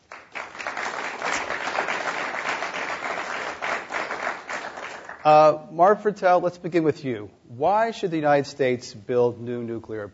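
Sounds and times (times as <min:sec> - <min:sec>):
audience applause welcoming panel guests: 0:00.0 - 0:05.3
speech: 0:05.2 - 0:10.1.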